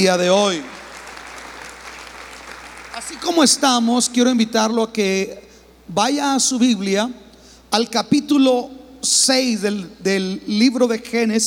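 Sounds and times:
speech: 0.0s - 0.7s, 3.1s - 11.4s
applause: 0.0s - 3.8s.

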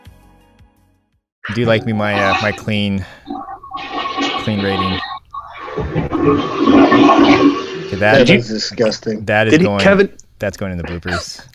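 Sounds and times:
speech: 1.5s - 3.4s, 4.2s - 5.1s, 5.8s - 11.5s
toilet flushing: 1.5s - 9.2s.

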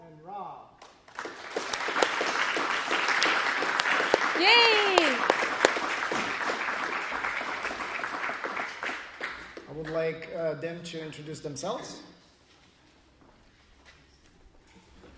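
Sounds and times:
audience applause: 1.1s - 10.2s
speech: 4.4s - 4.8s, 9.9s - 12.1s.

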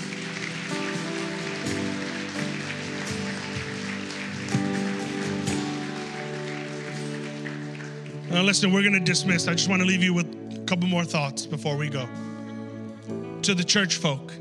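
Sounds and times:
audience clapping: 0.0s - 10.2s
speech: 8.3s - 12.3s, 13.1s - 14.3s.

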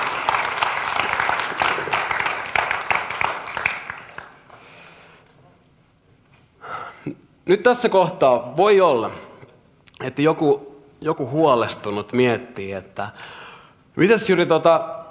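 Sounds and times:
applause: 0.0s - 4.6s
speech: 7.5s - 9.2s, 10.0s - 13.4s, 14.0s - 15.0s.

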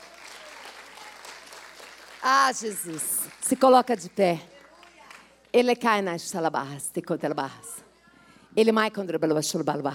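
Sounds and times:
audience applauding: 0.0s - 5.3s
speech: 2.2s - 4.5s, 5.5s - 7.7s, 8.6s - 9.9s.

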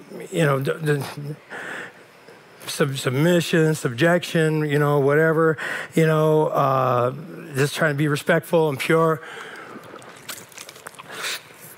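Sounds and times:
speech: 0.1s - 1.6s, 2.7s - 9.5s
person drinking from a new water bottle, sloshing and gulping: 9.2s - 11.7s.

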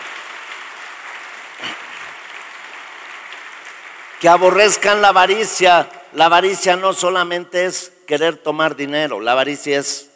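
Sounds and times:
audience applauding: 0.0s - 5.6s
speech: 4.2s - 10.1s.

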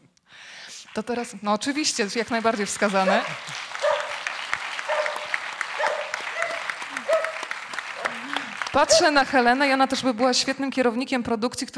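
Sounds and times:
speech: 1.0s - 3.7s, 8.8s - 11.7s
audience applause: 1.8s - 9.9s.

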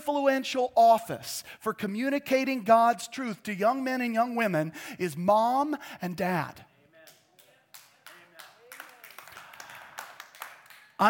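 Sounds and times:
speech: 0.1s - 6.7s
audience applause: 7.7s - 11.0s.

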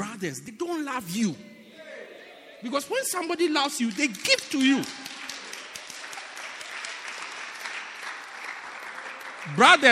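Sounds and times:
speech: 0.2s - 1.5s, 2.6s - 5.1s, 9.4s - 9.9s
audience applause: 3.8s - 9.9s.

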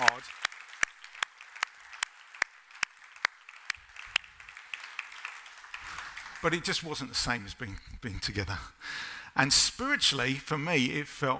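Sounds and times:
audience round of applause: 0.0s - 7.7s
speech: 6.4s - 11.3s.

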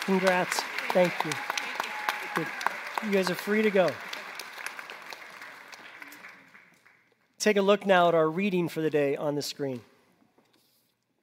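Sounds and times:
speech: 0.0s - 1.6s, 2.4s - 4.1s, 7.4s - 9.9s
audience applause: 0.0s - 7.1s.

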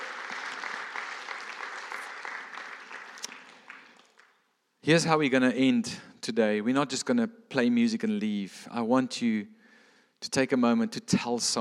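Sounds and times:
audience cheering and applauding: 0.0s - 4.4s
speech: 4.8s - 9.6s, 10.2s - 11.5s.

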